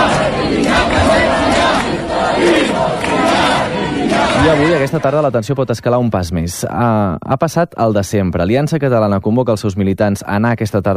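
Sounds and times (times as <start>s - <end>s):
crowd shouting and chanting at a rally: 0.0s - 5.7s
speech: 4.9s - 10.9s.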